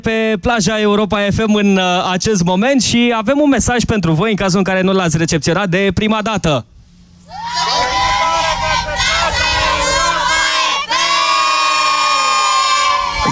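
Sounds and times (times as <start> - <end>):
speech: 0.0 - 6.7
cheerful crowd on the Europa FM beach: 7.2 - 13.3.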